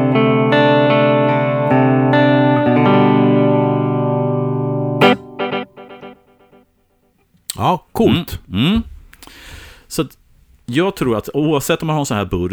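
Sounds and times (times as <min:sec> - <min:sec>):
distorted electric guitar through long delay into short delay: 0:00.0 - 0:06.5
speech: 0:07.6 - 0:12.5.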